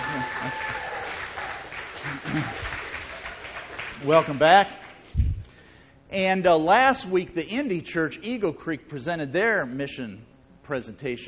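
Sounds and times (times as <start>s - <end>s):
audience applause at a church gathering for newlyweds: 0.0s - 5.0s
speech: 0.4s - 0.7s, 4.0s - 4.8s, 6.1s - 11.2s.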